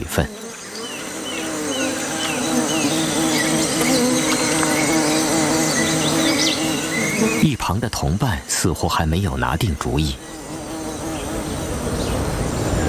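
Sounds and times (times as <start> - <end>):
bees buzzing: 0.0 - 12.8
speech: 0.2 - 0.4, 7.7 - 10.5.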